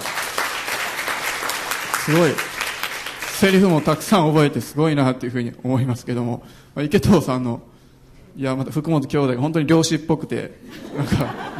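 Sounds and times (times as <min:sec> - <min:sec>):
audience applause: 0:00.0 - 0:04.0
speech: 0:02.1 - 0:02.5, 0:03.4 - 0:07.7, 0:08.4 - 0:11.5
laughter: 0:10.6 - 0:11.5.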